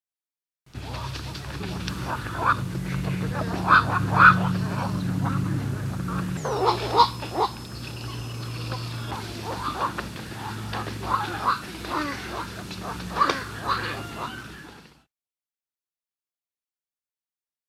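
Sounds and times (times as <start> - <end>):
black-crowned night heron calling: 0.8 - 14.8.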